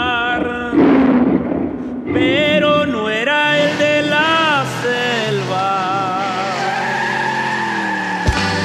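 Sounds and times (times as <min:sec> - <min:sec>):
green Expedition SUV engine roaring: 0:00.0 - 0:08.6.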